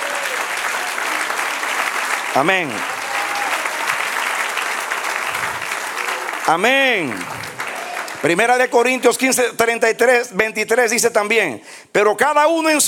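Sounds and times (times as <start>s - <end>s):
audience applauding: 0.0s - 8.8s
speech: 2.3s - 2.9s, 6.5s - 7.6s, 8.2s - 12.8s.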